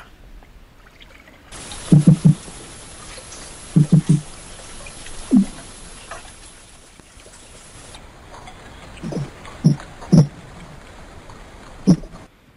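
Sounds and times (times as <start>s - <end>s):
watery hiss: 1.5s - 10.3s
wels catfish calls recorded underwater: 3.8s - 4.3s, 9.0s - 10.4s, 11.9s - 12.2s.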